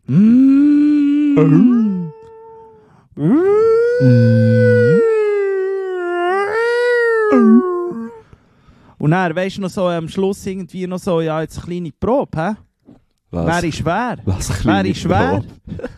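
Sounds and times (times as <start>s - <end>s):
voice imitating whale song: 0.0s - 8.2s
speech: 1.4s - 1.8s, 9.1s - 12.6s, 13.3s - 15.9s.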